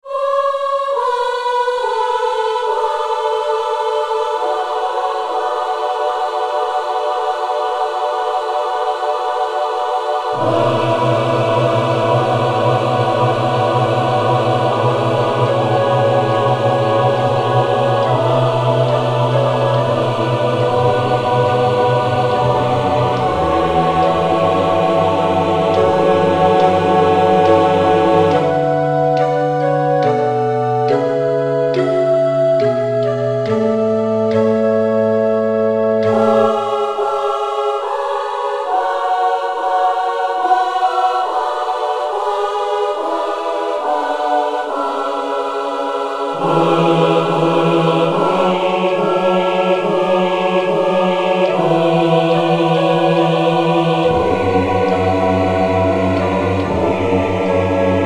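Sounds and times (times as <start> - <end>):
solo and SATB and SSAATTBB choir singing: 0.0 - 58.0.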